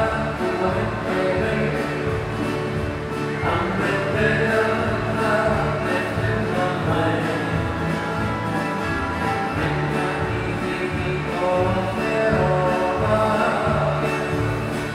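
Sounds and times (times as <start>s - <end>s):
hula music: 0.0s - 14.9s.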